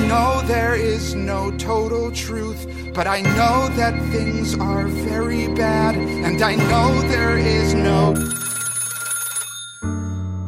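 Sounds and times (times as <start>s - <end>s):
speech: 0.1s - 8.4s
telephone electronic ringtone: 2.9s - 10.4s.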